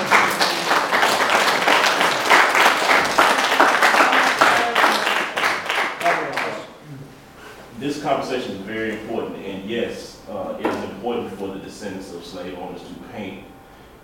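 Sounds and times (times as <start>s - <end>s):
audience applause: 0.0s - 6.8s
speech: 8.0s - 14.0s.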